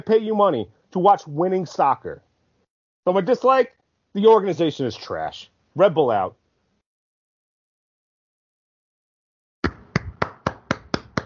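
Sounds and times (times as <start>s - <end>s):
speech: 0.0s - 2.3s, 3.0s - 6.4s
hands clapping: 9.6s - 11.2s.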